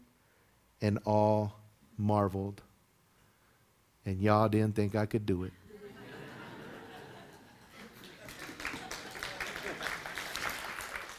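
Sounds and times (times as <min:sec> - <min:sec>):
speech: 0:00.8 - 0:02.7, 0:04.0 - 0:05.6
laughter: 0:05.7 - 0:10.3
audience clapping: 0:07.7 - 0:11.1.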